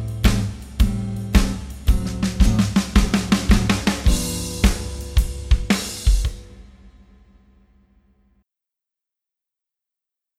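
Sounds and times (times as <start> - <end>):
jazz bass playing blues: 0.0 - 6.6.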